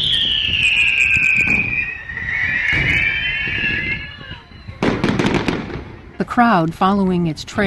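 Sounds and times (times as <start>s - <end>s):
firework launched from a mortar with a forceful shoom: 0.0s - 6.1s
speech: 6.4s - 7.6s.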